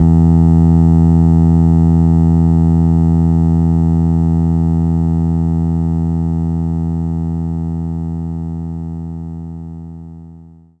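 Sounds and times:
bass: 0.0 - 10.7.

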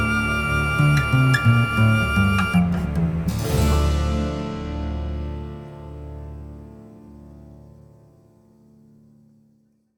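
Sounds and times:
tavern ambience: 0.0 - 7.6.

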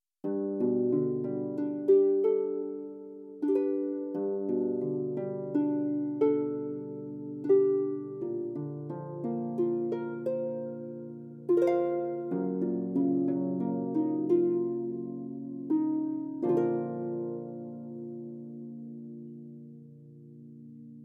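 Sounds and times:
harps: 0.2 - 21.0.

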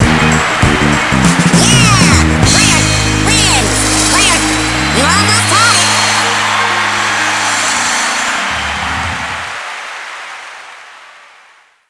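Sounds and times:
battle mode end game music: 0.0 - 9.3.

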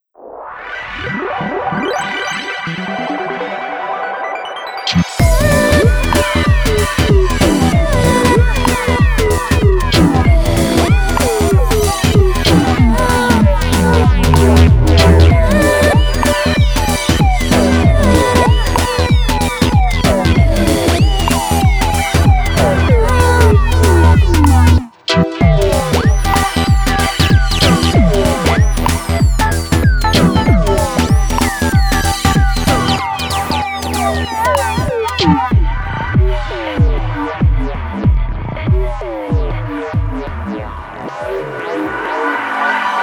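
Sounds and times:
forest dub music: 1.1 - 43.0.

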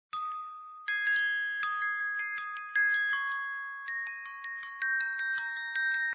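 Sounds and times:
chimes: 0.1 - 6.1.

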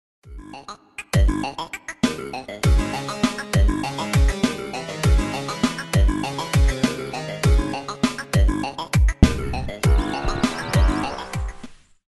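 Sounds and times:
spooky Halloween theme music: 2.7 - 11.8.

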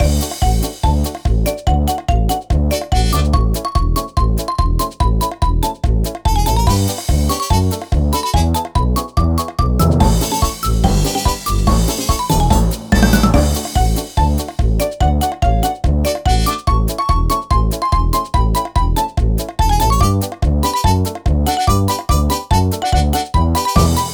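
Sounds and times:
mini game background music: 0.0 - 24.1.

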